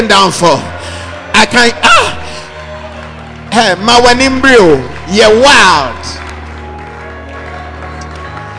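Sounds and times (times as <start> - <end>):
speech: 0.0 - 0.7, 1.4 - 2.2, 3.6 - 6.2
audience clapping: 0.0 - 8.5.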